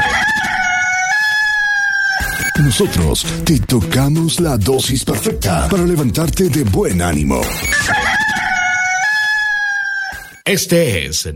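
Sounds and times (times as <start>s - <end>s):
rooster crowing at dawn: 0.0s - 2.6s, 7.6s - 10.4s
speech: 2.6s - 8.1s, 10.4s - 11.3s.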